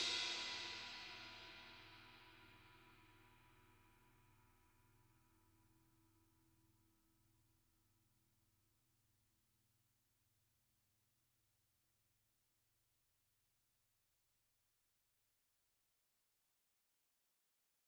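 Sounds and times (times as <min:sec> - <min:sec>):
crash cymbal hit with hickory sticks: 0:00.0 - 0:03.0.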